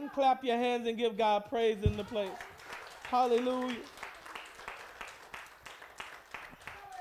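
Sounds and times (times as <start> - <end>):
speech: 0.2 - 4.0
audience clapping: 1.9 - 7.0.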